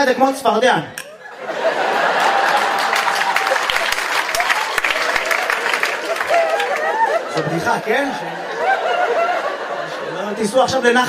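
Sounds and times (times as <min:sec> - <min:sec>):
speech: 0:00.0 - 0:01.8, 0:07.4 - 0:08.5, 0:10.4 - 0:11.0
laughter: 0:01.1 - 0:04.0, 0:06.1 - 0:10.7
audience applause: 0:01.6 - 0:09.6
crowd murmuring: 0:01.6 - 0:10.6.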